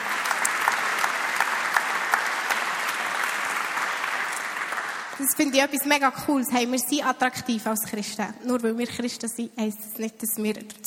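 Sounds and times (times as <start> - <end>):
audience applause: 0.0 - 5.5
speech: 5.2 - 10.8.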